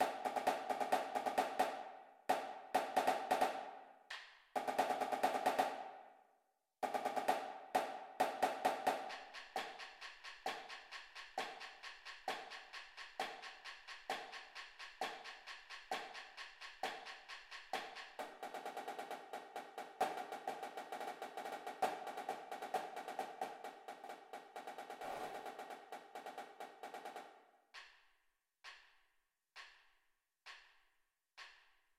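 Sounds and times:
snare drumline: 0:00.0 - 0:06.0, 0:06.8 - 0:27.9.

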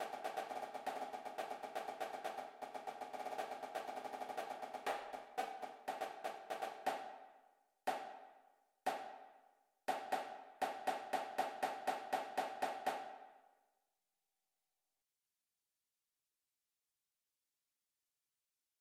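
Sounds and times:
snare drum: 0:00.0 - 0:07.3, 0:07.9 - 0:08.3, 0:08.9 - 0:09.3, 0:09.9 - 0:13.3.

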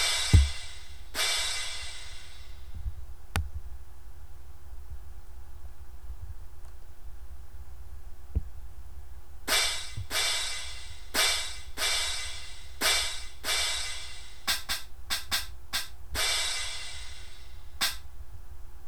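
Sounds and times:
cymbals: 0:00.0 - 0:02.7, 0:09.5 - 0:18.0.

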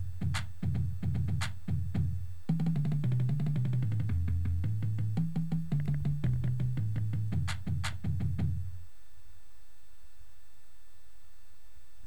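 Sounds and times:
drumline: 0:00.0 - 0:08.7
bass: 0:00.0 - 0:08.8.

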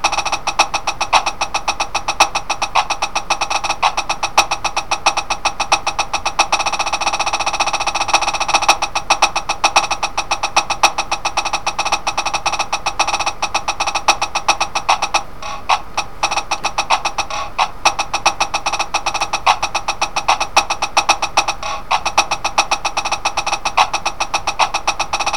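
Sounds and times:
drumline snare drum: 0:00.0 - 0:25.3.

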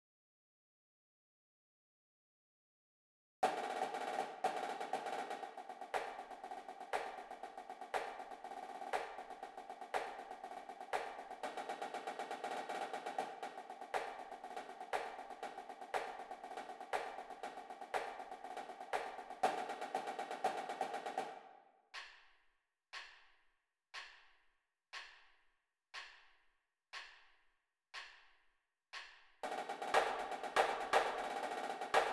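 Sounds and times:
drumline snare cadence: 0:03.4 - 0:22.1, 0:29.4 - 0:32.1.

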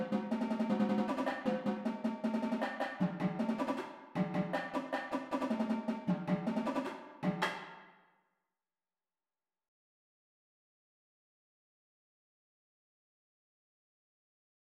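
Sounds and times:
drumline: 0:00.0 - 0:07.6.

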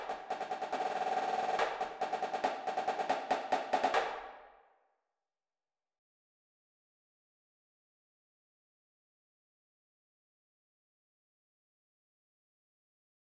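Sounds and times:
snare drumline: 0:00.0 - 0:04.4.

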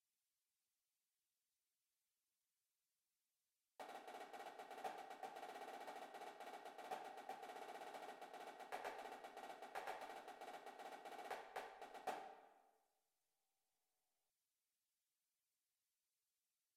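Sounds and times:
drumline snare drum cadence: 0:03.8 - 0:12.4.

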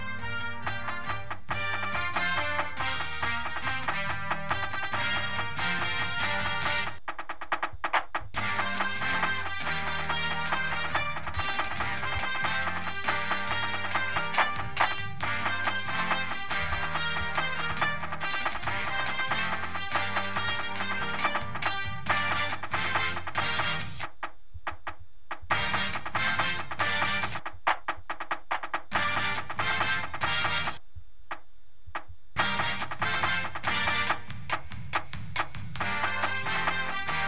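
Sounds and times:
music: 0:00.0 - 0:07.0, 0:07.9 - 0:24.1, 0:25.5 - 0:27.5, 0:28.8 - 0:30.8, 0:32.4 - 0:37.2
drumline snare drum: 0:00.0 - 0:31.4, 0:32.0 - 0:37.2.

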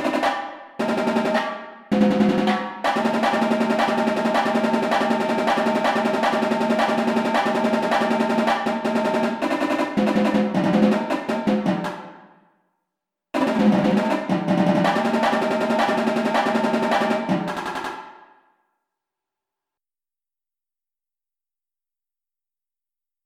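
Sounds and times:
tenor drums: 0:00.0 - 0:12.3, 0:13.4 - 0:18.3
drumline: 0:02.1 - 0:12.1, 0:13.4 - 0:18.0.

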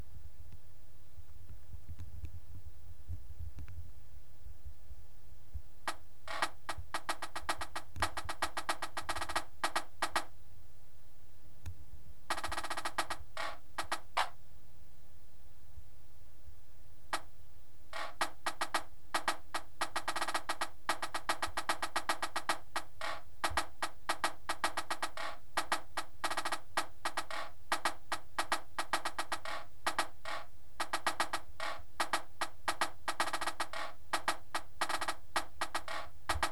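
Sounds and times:
snare drum: 0:05.9 - 0:10.3, 0:12.3 - 0:14.4, 0:18.0 - 0:36.5.

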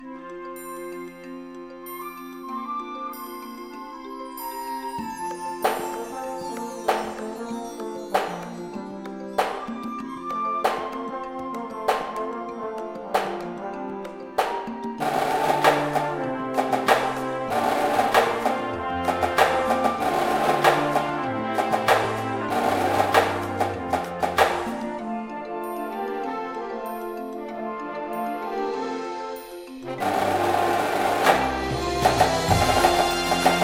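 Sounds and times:
music: 0:00.0 - 0:33.6
snare drum: 0:05.6 - 0:06.1, 0:06.9 - 0:07.5, 0:08.1 - 0:08.6, 0:09.4 - 0:10.0, 0:10.6 - 0:11.2, 0:11.9 - 0:12.4, 0:13.1 - 0:13.6, 0:14.4 - 0:25.0, 0:29.9 - 0:33.6.

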